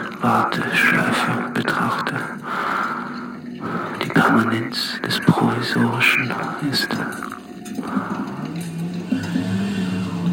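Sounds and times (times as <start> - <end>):
speech: 0.2 - 2.6, 4.2 - 8.0
car engine accelerating as car drives off: 7.8 - 10.3.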